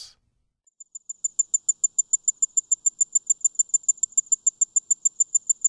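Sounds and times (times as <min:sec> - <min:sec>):
tinkling ground cricket singing high bell-like pulses: 0:00.7 - 0:05.6.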